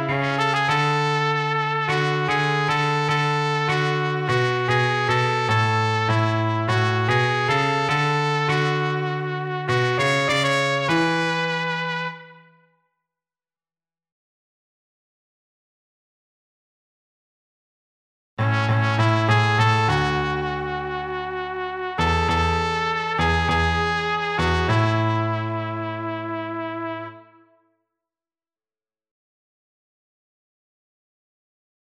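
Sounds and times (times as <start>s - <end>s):
piano: 0.0s - 12.7s, 18.4s - 27.5s
trumpet: 0.0s - 12.7s, 18.4s - 27.6s.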